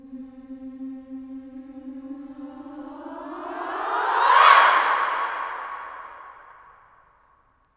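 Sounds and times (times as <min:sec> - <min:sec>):
female swooping sound: 0:02.3 - 0:06.8.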